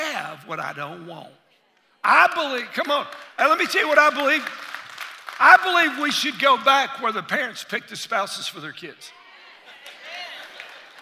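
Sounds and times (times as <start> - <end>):
speech: 0.4 - 1.4, 2.0 - 4.6, 5.4 - 9.2
audience clapping: 2.2 - 6.9, 9.8 - 10.9.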